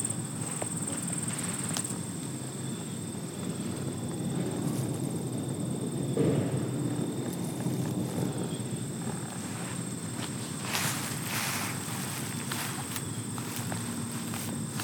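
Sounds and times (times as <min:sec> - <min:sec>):
thin high insect whine: 0:00.0 - 0:14.8
footsteps crunching over gravel: 0:09.1 - 0:14.8.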